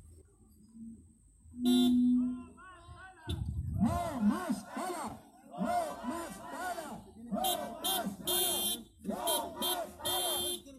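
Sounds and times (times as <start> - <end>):
voices chattering: 0.0 - 10.7
speech: 1.5 - 2.1
car horn honking in support: 1.5 - 2.6, 7.4 - 10.7.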